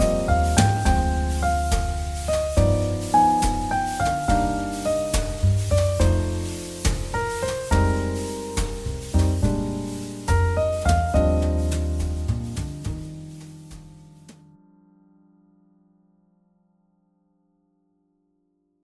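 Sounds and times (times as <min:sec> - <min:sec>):
jazz ballad: 0:00.0 - 0:14.5.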